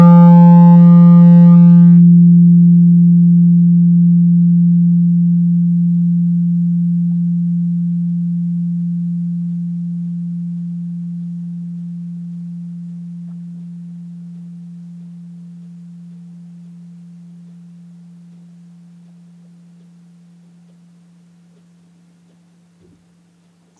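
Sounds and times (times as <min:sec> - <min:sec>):
weighted chakra tuning forks ringing: 0:00.0 - 0:22.1.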